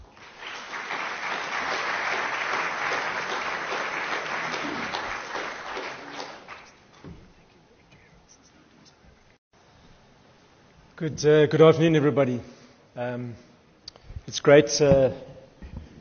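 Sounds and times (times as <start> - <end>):
audience applause welcoming speakers: 0.0 - 6.8
speech: 11.0 - 13.5, 14.4 - 15.3.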